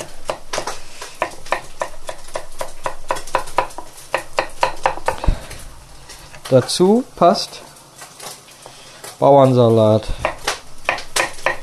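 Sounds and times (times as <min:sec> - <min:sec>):
knife chopping food: 0:00.0 - 0:05.5, 0:10.2 - 0:11.6
faint kitchen clatter: 0:00.0 - 0:11.6
speech: 0:06.5 - 0:07.7, 0:09.2 - 0:10.2.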